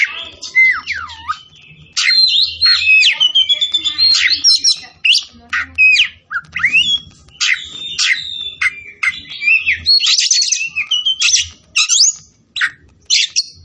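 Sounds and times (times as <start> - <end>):
Oriental magpie-robin singing vigorously: 0.0 - 13.6.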